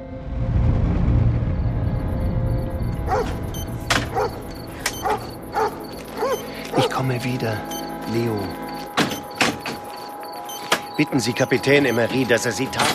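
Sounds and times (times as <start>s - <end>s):
low rumbling noise: 0.0s - 5.4s
dog whimpering: 4.1s - 7.0s
speech: 6.8s - 8.7s, 11.0s - 12.9s.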